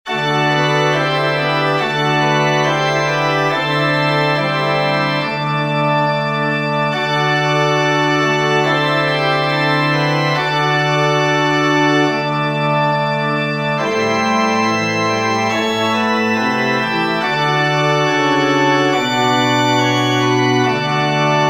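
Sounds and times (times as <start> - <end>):
organ: 0.1 - 21.4.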